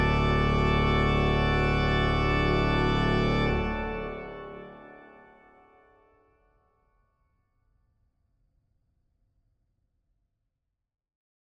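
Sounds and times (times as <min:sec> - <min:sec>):
organ playing with full plenum: 0:00.0 - 0:05.6.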